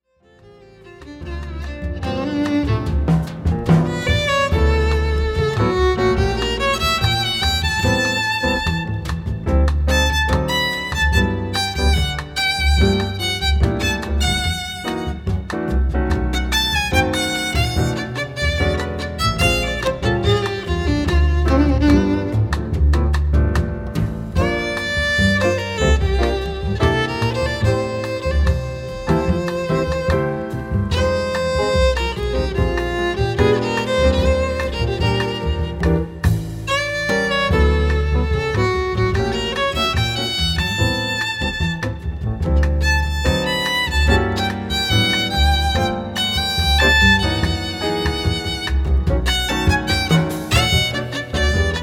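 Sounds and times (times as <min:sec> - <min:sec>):
jazz music: 0:00.2 - 0:51.8.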